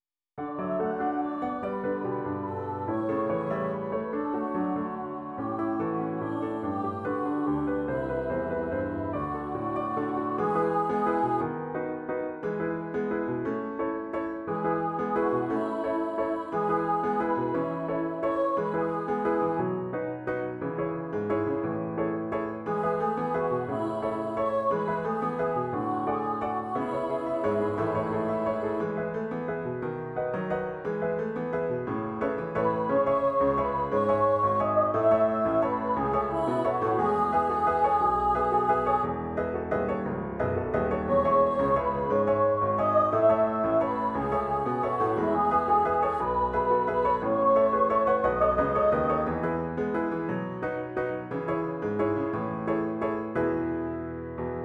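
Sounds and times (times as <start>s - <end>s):
piano: 0.0s - 54.6s.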